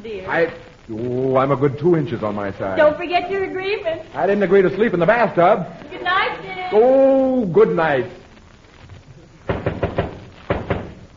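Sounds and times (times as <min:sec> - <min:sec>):
speech: 0:00.0 - 0:08.2
knocking on a door: 0:09.5 - 0:11.0.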